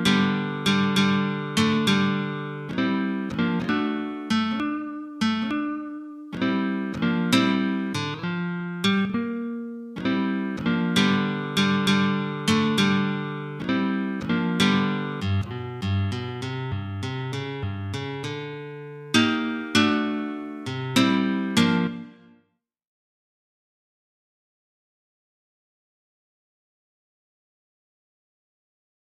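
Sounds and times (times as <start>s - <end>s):
Chicago style blues rhythm in open G: 0.0s - 22.4s.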